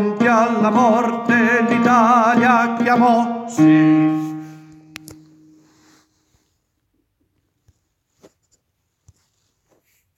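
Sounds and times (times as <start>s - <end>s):
baritones singing a national anthem: 0.0s - 4.0s.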